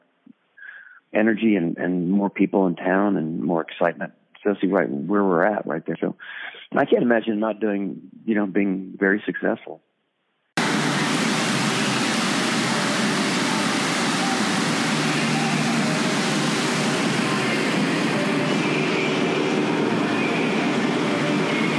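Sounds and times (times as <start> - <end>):
speech: 1.1 - 9.9
running water: 10.6 - 21.7.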